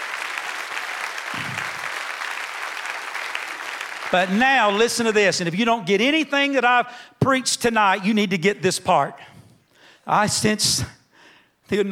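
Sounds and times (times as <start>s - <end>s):
audience applause: 0.0s - 4.8s
speech: 4.1s - 9.3s, 10.1s - 11.0s, 11.7s - 11.8s.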